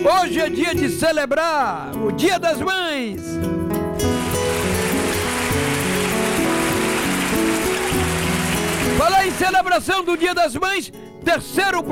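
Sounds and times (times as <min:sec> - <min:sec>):
speech: 0:00.0 - 0:04.1, 0:09.0 - 0:11.9
loud music with held tones and melodic line: 0:04.0 - 0:10.5
applause from many hands: 0:04.0 - 0:10.6.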